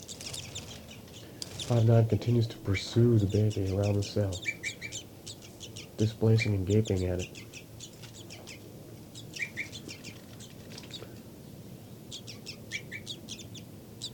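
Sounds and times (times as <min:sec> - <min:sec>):
bird flight calls: 0:00.0 - 0:11.3, 0:12.0 - 0:14.1
low hum: 0:00.0 - 0:14.1
speech: 0:01.7 - 0:04.6, 0:06.0 - 0:07.4.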